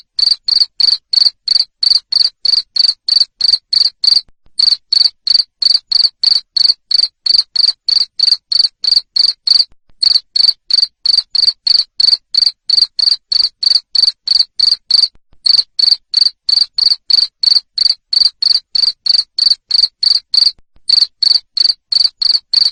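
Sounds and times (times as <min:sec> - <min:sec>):
cricket chirping: 0:00.0 - 0:22.7.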